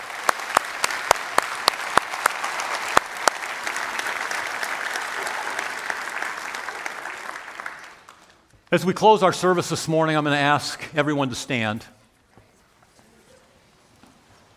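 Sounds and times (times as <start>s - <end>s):
audience applause: 0.0s - 8.5s
speech: 8.7s - 12.0s.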